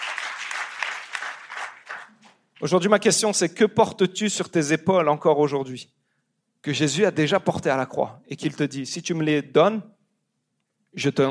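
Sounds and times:
audience applause at a church gathering: 0:00.0 - 0:02.2
speech: 0:02.6 - 0:06.0, 0:06.6 - 0:10.0, 0:10.9 - 0:11.2.

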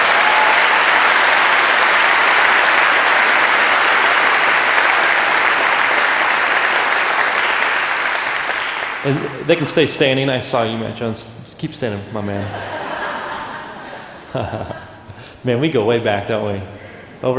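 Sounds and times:
audience clapping: 0:00.0 - 0:10.2
laughter: 0:09.0 - 0:09.9, 0:12.2 - 0:15.2
speech: 0:09.0 - 0:12.8, 0:14.3 - 0:14.8, 0:15.4 - 0:17.3.

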